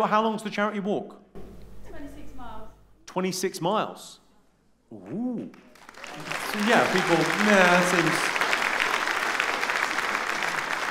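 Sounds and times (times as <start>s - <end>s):
speech: 0.0s - 1.2s, 3.1s - 4.2s, 4.9s - 5.6s, 6.2s - 8.4s
audience applause: 5.6s - 10.8s.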